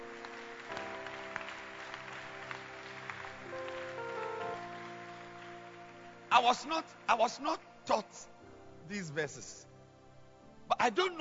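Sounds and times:
audience clapping: 0.0 - 7.7
sustained organ or keyboard chords: 0.0 - 11.1
speech: 6.4 - 9.7, 10.8 - 11.1.

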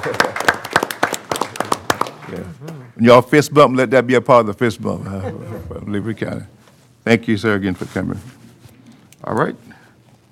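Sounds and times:
speech: 0.0 - 0.4, 3.0 - 8.4, 9.2 - 9.7
audience applause: 0.0 - 2.6.

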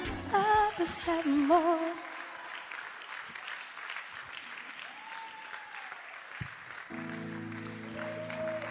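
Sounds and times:
audience clapping: 0.3 - 8.6
speech: 0.9 - 2.1.

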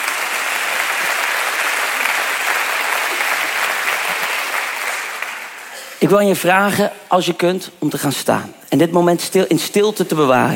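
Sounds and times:
audience applause: 0.0 - 5.8
speech: 6.0 - 10.5.

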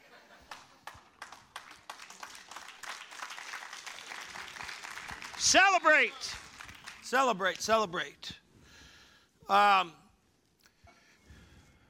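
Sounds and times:
audience applause: 0.5 - 7.2
speech: 5.4 - 6.4, 7.1 - 8.4, 9.5 - 10.0.

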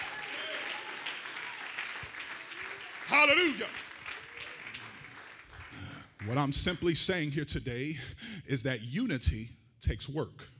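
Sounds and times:
audience clapping hands: 0.0 - 6.8
speech: 3.1 - 3.8, 6.2 - 10.5.

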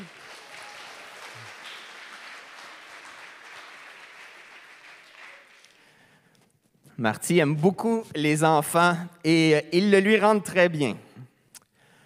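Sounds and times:
crowd applauding: 0.0 - 6.0
speech: 7.0 - 11.0.

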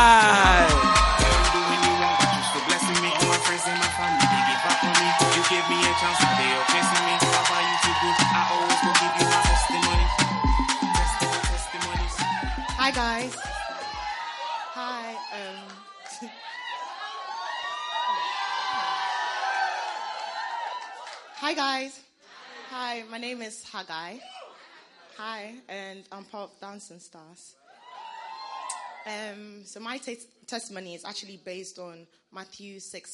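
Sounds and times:
steady low beat: 0.0 - 13.6
excited voices: 0.0 - 21.2
large crowd clapping and cheering: 0.0 - 21.5
speech: 23.8 - 24.4, 25.2 - 27.6, 29.0 - 33.1.

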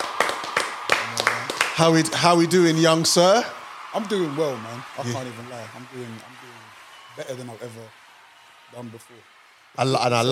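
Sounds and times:
hand claps: 0.0 - 1.8
speech: 1.8 - 8.0, 8.7 - 10.3.

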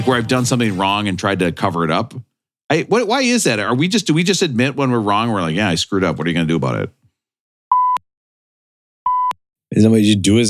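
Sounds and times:
speech: 0.0 - 7.0, 9.7 - 10.4
inserted beeps: 7.7 - 8.0, 9.1 - 9.4.

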